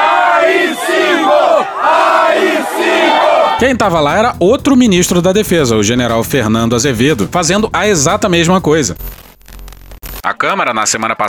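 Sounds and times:
protest crowd chanting slogans: 0.0s - 3.6s
speech: 3.6s - 9.2s, 10.2s - 11.2s.

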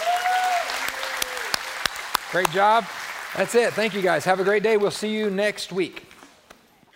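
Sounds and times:
audience applause: 0.0s - 5.2s
speech: 2.3s - 6.1s.

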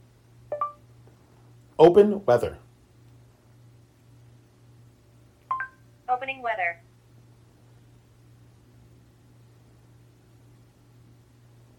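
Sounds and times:
phone voice assistant beep: 0.5s - 0.8s, 5.5s - 5.8s
speech: 1.8s - 2.6s.

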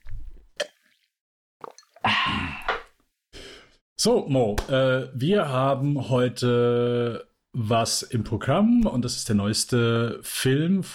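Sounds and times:
person sipping water: 0.0s - 3.0s
speech: 4.0s - 10.9s.

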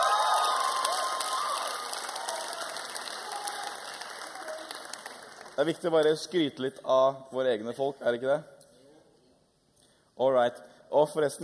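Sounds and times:
audience applause: 0.0s - 5.8s
speech: 5.6s - 8.6s, 10.2s - 11.4s.

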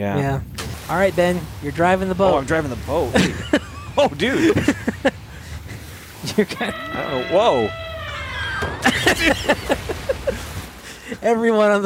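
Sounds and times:
speech: 0.0s - 5.2s, 6.3s - 7.8s, 8.6s - 9.7s, 11.2s - 11.8s
laughter: 1.8s - 11.8s
elephant crying out: 5.2s - 10.8s.

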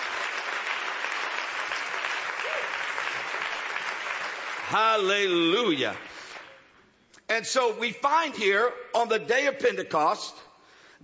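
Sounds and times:
audience clapping hands: 0.0s - 6.8s
speech: 4.7s - 6.1s, 7.3s - 10.4s.

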